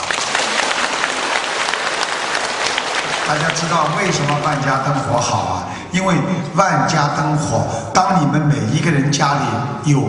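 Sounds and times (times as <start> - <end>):
sizable audience applause: 0.0 - 5.3
speech: 3.3 - 10.0.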